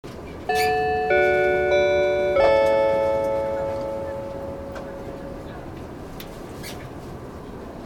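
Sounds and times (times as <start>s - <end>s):
chime: 0.5s - 5.5s.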